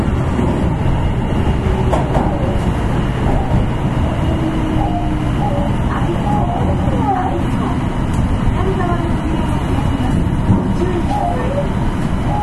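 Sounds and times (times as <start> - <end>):
Kitakyu 9000 series subway train rumble on the Midosuji Line: 0.0 - 12.4
faint whining tones: 1.0 - 7.3, 10.8 - 12.4.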